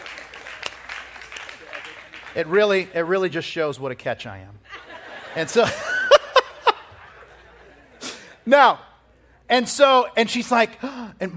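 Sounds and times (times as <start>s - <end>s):
audience clapping: 0.0s - 3.2s
speech: 2.4s - 4.7s, 5.3s - 5.9s, 8.5s - 8.9s, 9.5s - 11.3s
laughter: 4.7s - 8.2s.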